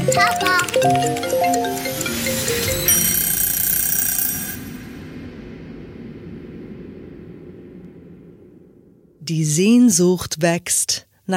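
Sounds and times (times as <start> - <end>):
laundry timer alarm ringing: 0.0 - 5.1
speech: 0.2 - 1.3, 9.3 - 11.3.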